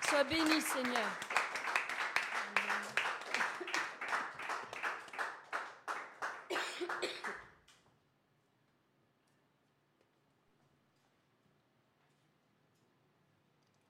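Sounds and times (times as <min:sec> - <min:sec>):
audience applauding: 0:00.0 - 0:07.5
speech: 0:00.1 - 0:01.4.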